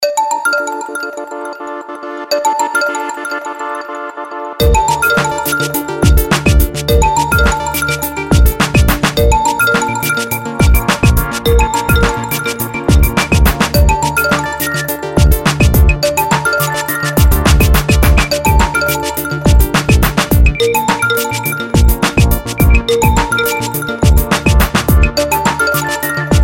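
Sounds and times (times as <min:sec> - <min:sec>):
chime: 0:00.0 - 0:26.4.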